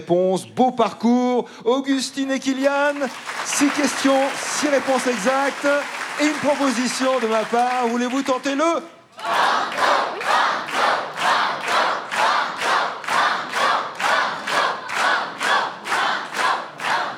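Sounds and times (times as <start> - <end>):
speech: 0.0 - 9.8
game show audience clapping: 2.6 - 8.8, 9.4 - 17.1
game show audience chanting banco: 9.2 - 17.1.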